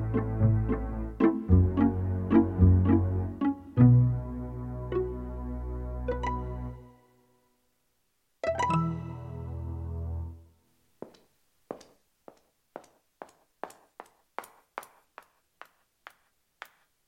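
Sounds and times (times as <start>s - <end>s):
pizzicato strings: 0.0s - 6.8s.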